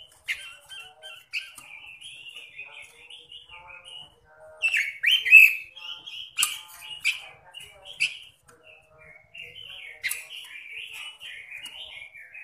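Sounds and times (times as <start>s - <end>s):
robin calling: 0.0s - 12.4s.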